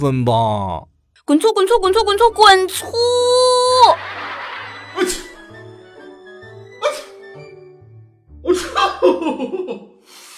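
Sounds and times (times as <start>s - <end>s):
speech: 0.0s - 4.2s
laughter: 3.9s - 5.4s, 8.5s - 10.0s
person sneezing: 5.0s - 5.4s, 6.8s - 7.2s.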